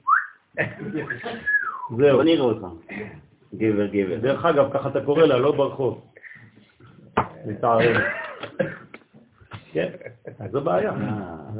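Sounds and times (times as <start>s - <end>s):
person whistling: 0.0s - 0.4s, 1.0s - 1.9s
laughter: 0.6s - 1.6s, 7.8s - 11.3s
speech: 0.6s - 6.1s, 7.4s - 8.2s, 9.8s - 11.5s.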